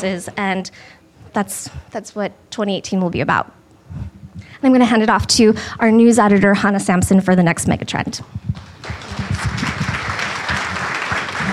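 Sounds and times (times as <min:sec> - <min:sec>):
speech: 0:00.0 - 0:08.7
applause: 0:08.6 - 0:11.5.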